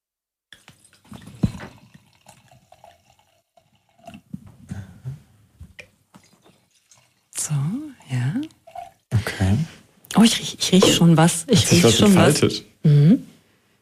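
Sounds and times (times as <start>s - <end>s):
wine pouring into glasses: 0.6s - 4.3s, 6.2s - 9.3s
speech: 7.5s - 8.5s, 10.2s - 12.7s.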